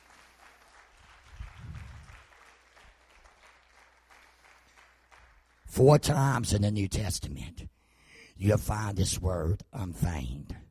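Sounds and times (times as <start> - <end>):
audience clapping hands: 0.0 - 5.9
speech: 5.8 - 7.8, 8.4 - 10.6.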